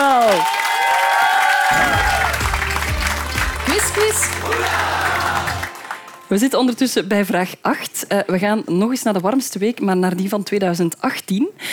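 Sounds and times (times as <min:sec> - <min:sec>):
audience applause: 0:00.0 - 0:06.3
speech: 0:06.3 - 0:11.7.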